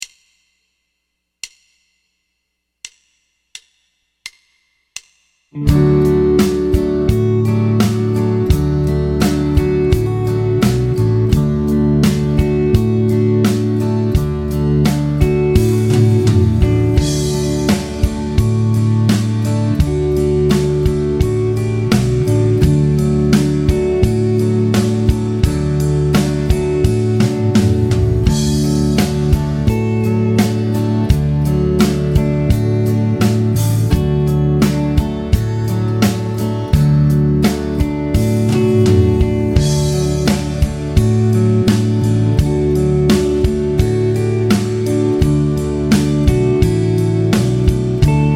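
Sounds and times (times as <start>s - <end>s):
D major triad vamp: 5.6s - 48.3s.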